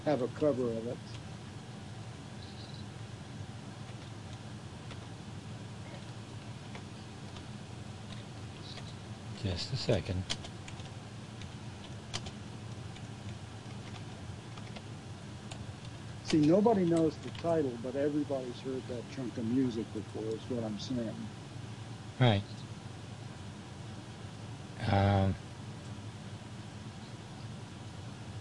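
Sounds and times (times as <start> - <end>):
speech: 0.0 - 1.3, 9.4 - 10.5, 16.3 - 21.4, 22.2 - 22.7, 24.9 - 25.4
typing on a keyboard: 10.3 - 13.1, 13.7 - 14.8.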